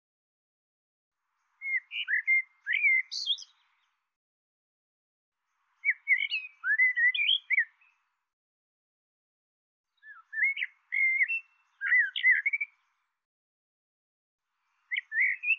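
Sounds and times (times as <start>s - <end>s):
bird twittering chirps: 1.4s - 4.0s, 5.5s - 8.1s, 10.0s - 13.0s, 14.8s - 15.5s.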